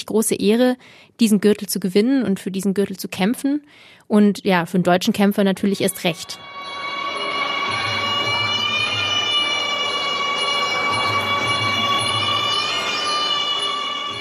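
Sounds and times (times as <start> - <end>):
speech: 0.0 - 6.8
wailing reedy high tone at Muay Thai fight: 5.7 - 14.1.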